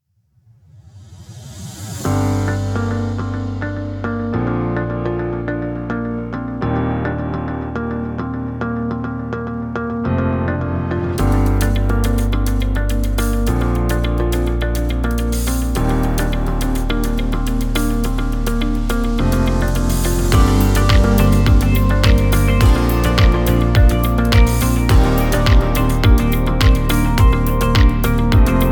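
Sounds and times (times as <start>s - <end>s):
calm corporate music: 2.1s - 28.7s.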